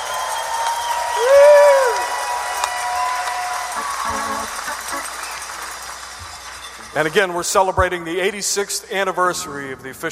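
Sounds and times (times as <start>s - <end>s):
theater audience applauding: 0.0s - 7.5s
person cheering: 1.0s - 4.8s
speech: 7.0s - 10.1s.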